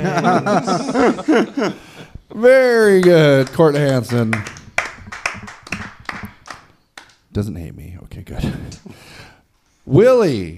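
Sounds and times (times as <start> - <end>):
laughter: 0.0 - 2.1
speech: 0.0 - 4.6, 7.4 - 9.2, 9.9 - 10.5
small audience clapping: 2.8 - 7.3.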